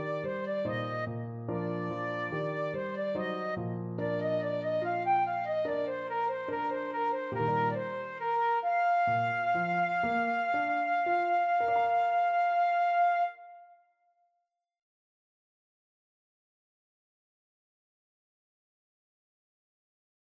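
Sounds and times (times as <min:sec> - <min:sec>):
flute and clarinet duet: 0:00.0 - 0:13.8.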